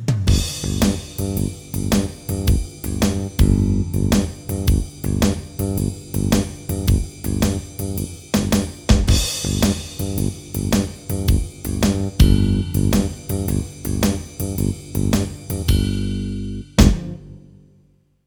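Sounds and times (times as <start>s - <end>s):
blues music: 0.3s - 17.6s.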